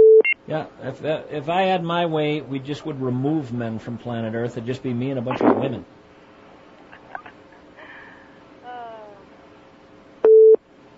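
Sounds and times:
repeating telephone line beep: 0:00.0 - 0:00.4, 0:10.2 - 0:10.6
speech: 0:00.5 - 0:06.0.

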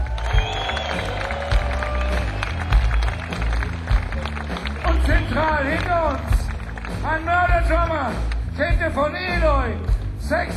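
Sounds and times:
audience applause: 0:00.0 - 0:08.4
speech: 0:07.0 - 0:10.5.

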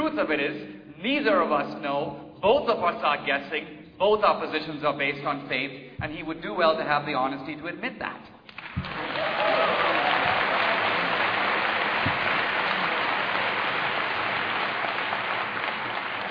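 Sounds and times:
speech: 0:00.2 - 0:09.4
audience clapping: 0:08.5 - 0:16.2.

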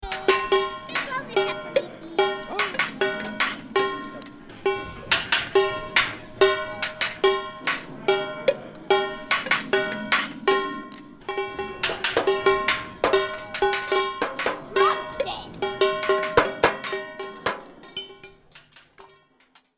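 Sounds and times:
drum set: 0:00.0 - 0:19.0.

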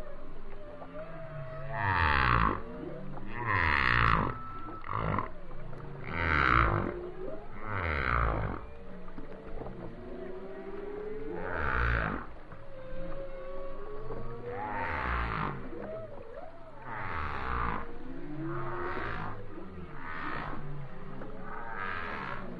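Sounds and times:
broad washes of noise: 0:00.0 - 0:22.5
whale song: 0:00.0 - 0:22.5.

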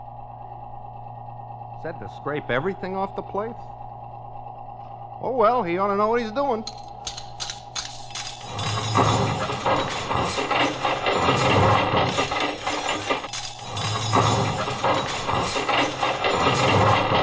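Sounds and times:
garbage disposal motor hum: 0:00.0 - 0:17.2
speech: 0:01.8 - 0:03.8, 0:05.2 - 0:07.2
silverware grinding in a garbage disposal: 0:06.6 - 0:17.2.

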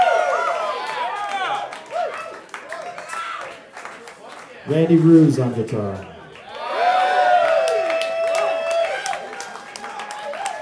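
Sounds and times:
audience cheering with whoops and shouted voices: 0:00.0 - 0:03.5, 0:06.4 - 0:10.6
audience clapping: 0:00.0 - 0:10.6
speech: 0:04.7 - 0:06.1.

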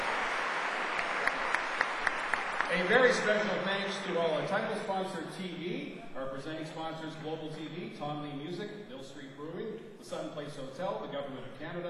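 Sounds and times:
festival audience applause for volunteers, donors and sponsors: 0:00.0 - 0:04.8
speech: 0:02.7 - 0:11.8.

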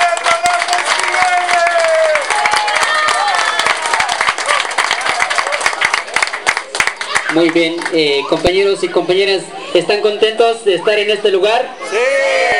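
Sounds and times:
audience applause: 0:00.0 - 0:08.0
crowd cheering: 0:00.0 - 0:08.6, 0:11.8 - 0:12.5
speech: 0:07.4 - 0:12.3.

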